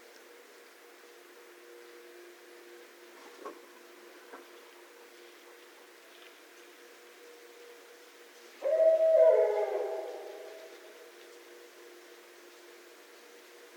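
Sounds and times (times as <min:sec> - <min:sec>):
barred owl hooting: 0:08.6 - 0:10.9.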